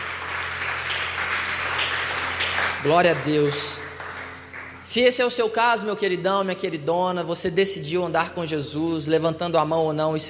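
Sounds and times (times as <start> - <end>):
church congregation applauding during a service: 0.0 - 5.5
speech: 2.8 - 3.8, 4.9 - 10.2.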